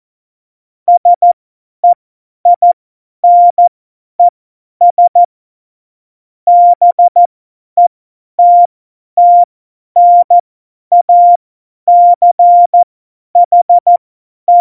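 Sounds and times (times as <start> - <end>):
CW Morse code beeps: 0.9 - 4.3, 4.9 - 5.3, 6.5 - 7.3, 8.4 - 14.5.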